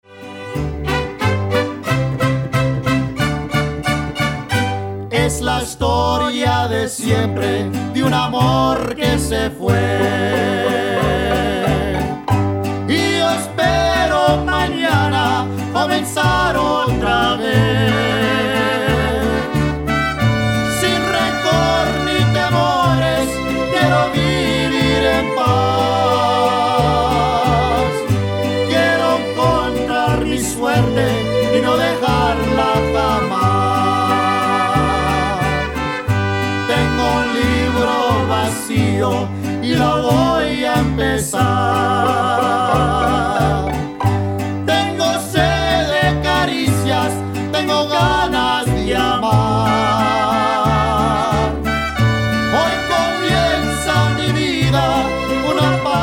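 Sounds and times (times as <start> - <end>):
mariachi music: 0.0 - 56.0.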